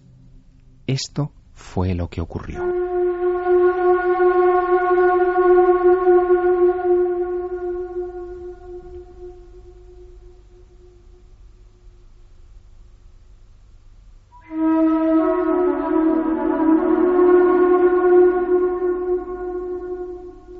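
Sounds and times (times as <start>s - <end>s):
speech: 0.9s - 2.8s
flute improvisation echoing inside the Great Pyramid: 2.6s - 11.9s, 14.3s - 20.5s.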